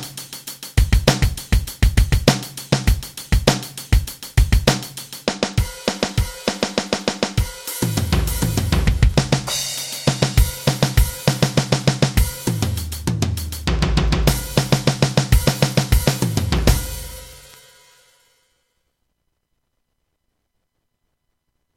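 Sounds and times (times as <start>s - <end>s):
rock duet: 0.8s - 17.6s.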